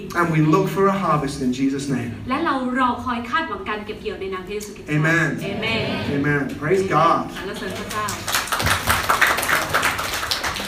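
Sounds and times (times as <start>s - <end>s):
speech: 0.0s - 8.4s
crowd clapping: 7.4s - 10.6s.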